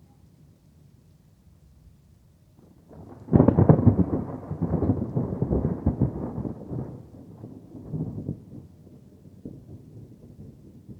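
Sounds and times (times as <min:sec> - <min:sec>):
thunder claps and rolls in an electric storm: 0:02.9 - 0:10.9.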